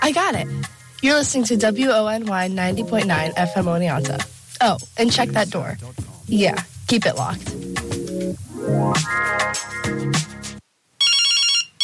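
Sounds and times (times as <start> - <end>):
speech: 0.1 - 7.7, 8.3 - 10.4
phone ringtone from unknown caller: 11.0 - 11.8.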